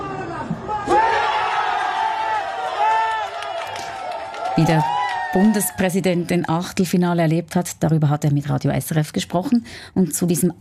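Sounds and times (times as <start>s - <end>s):
crowd cheering after penalty: 0.0s - 6.5s
speech: 4.6s - 10.5s.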